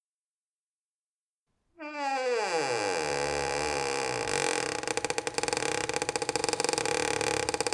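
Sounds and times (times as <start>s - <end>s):
door creaking: 1.8s - 6.2s, 6.8s - 7.6s.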